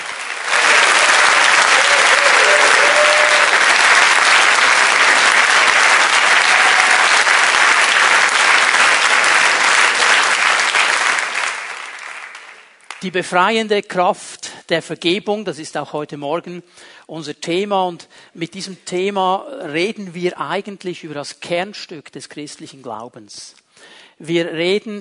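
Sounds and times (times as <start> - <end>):
church congregation applauding: 0.0 - 13.1
speech: 13.0 - 24.9.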